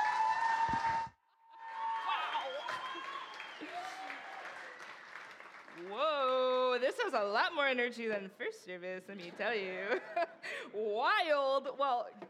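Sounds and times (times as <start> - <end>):
audience applauding: 0.0 - 6.0
speech: 6.9 - 12.2.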